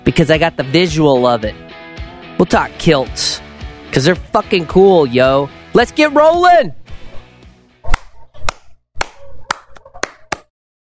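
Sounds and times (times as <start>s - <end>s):
speech: 0.0s - 1.6s, 2.4s - 6.8s
single hand clap: 7.9s - 10.5s.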